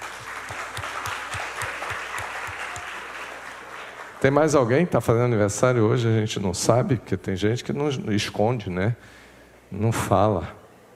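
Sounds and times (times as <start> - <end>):
audience applause: 0.0 - 4.6
speech: 4.2 - 10.6.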